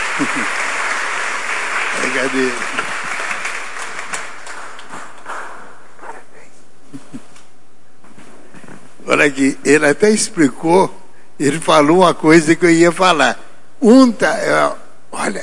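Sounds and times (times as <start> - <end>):
audience applause: 0.0 - 5.2
speech: 0.2 - 0.7, 2.0 - 2.8, 9.1 - 15.4.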